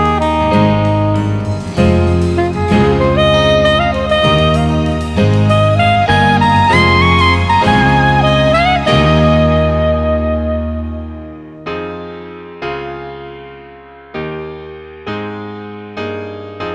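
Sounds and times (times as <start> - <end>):
karaoke backing track: 0.0 - 11.6.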